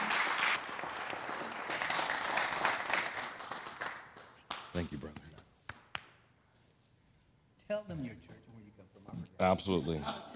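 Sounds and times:
audience applause: 0:00.0 - 0:04.7
speech: 0:04.8 - 0:05.2, 0:09.4 - 0:10.3.

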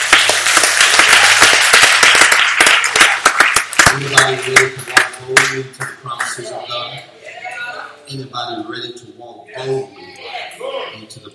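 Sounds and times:
audience clapping hands: 0:00.0 - 0:06.6
speech: 0:04.0 - 0:07.2, 0:08.1 - 0:11.3.

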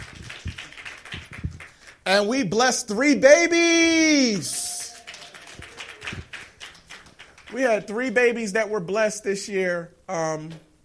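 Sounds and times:
audience hand clapping: 0:00.0 - 0:02.1, 0:04.3 - 0:07.9
speech: 0:02.1 - 0:04.6, 0:07.6 - 0:10.7.

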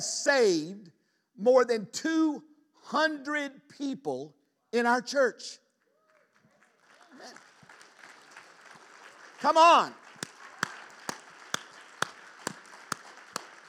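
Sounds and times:
speech: 0:00.0 - 0:05.6, 0:07.2 - 0:07.4, 0:09.4 - 0:10.0
audience applause: 0:06.0 - 0:13.6.

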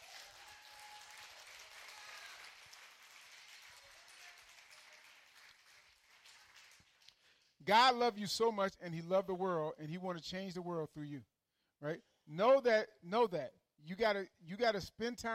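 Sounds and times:
audience hand clapping: 0:00.0 - 0:07.4
speech: 0:07.6 - 0:15.3.

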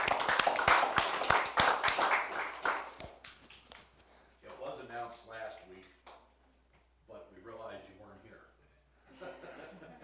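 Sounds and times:
audience applause: 0:00.0 - 0:03.0
laughter: 0:09.0 - 0:10.0.

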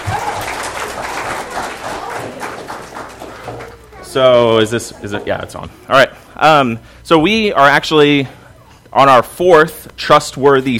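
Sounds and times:
audience applause for the kids: 0:00.0 - 0:04.2
speech: 0:04.1 - 0:10.7.

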